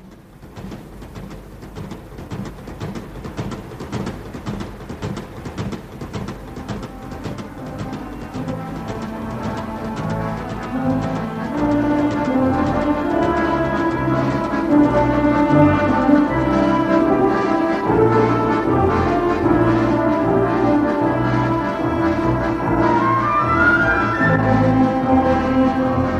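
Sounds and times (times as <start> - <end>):
freight train rolling along the rails toward Minsk: 0.0 - 26.1.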